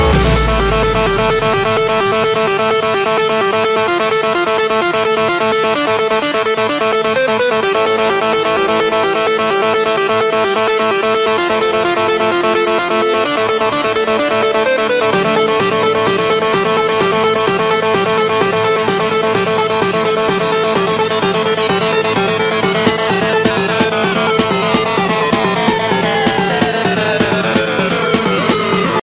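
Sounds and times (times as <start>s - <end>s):
ringtone: 0.0s - 29.0s.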